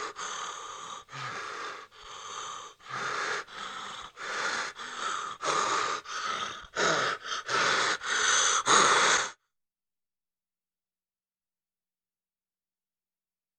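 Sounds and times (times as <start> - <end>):
adult man panting: 0.0 - 9.4.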